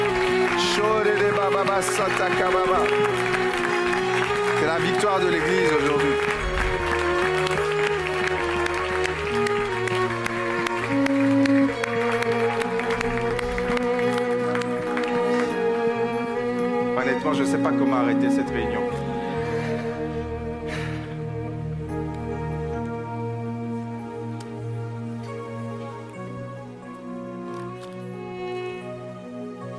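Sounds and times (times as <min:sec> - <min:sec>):
audience clapping: 0:00.0 - 0:17.2, 0:27.0 - 0:28.9
sustained music: 0:00.0 - 0:29.7
speech: 0:01.7 - 0:03.4, 0:04.6 - 0:06.4.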